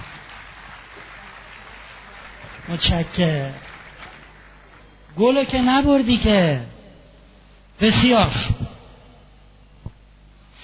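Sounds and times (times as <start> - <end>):
audience applause: 0.0 - 5.4
speech: 2.6 - 3.7, 5.2 - 6.7, 7.8 - 8.6.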